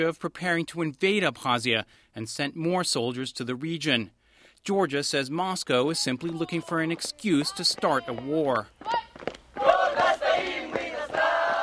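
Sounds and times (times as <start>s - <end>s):
speech: 0.0s - 9.3s
schoolchildren singing a patriotic song while marching in Suhumi: 9.6s - 11.6s.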